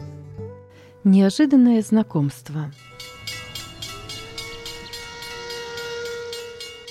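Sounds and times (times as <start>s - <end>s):
speech: 1.2s - 2.9s
steam train whistle at a station platform: 3.8s - 6.8s.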